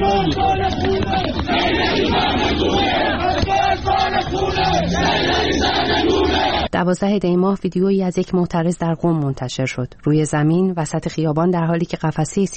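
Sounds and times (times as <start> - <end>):
funeral crowd chanting anti-government slogans in a cemetery in Falavarjan: 0.0 - 6.7
speech: 6.8 - 12.5.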